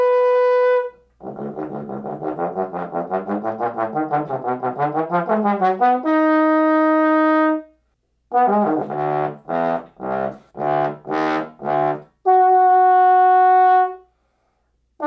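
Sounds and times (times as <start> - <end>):
trombone playing arioso: 0.0 - 7.7, 8.3 - 14.1.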